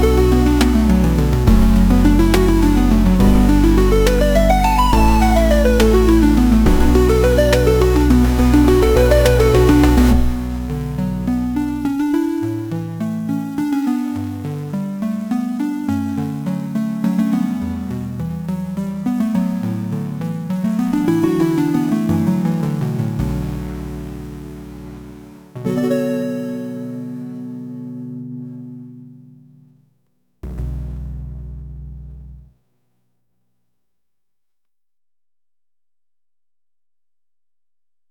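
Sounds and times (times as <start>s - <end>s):
chiptune music: 0.0s - 29.5s.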